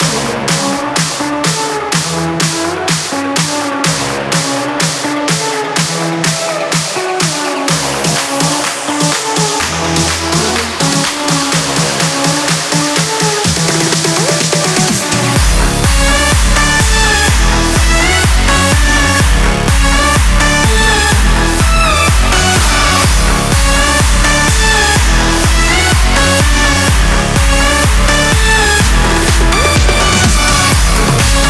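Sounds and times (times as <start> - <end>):
electronic dance music: 0.0 - 31.4.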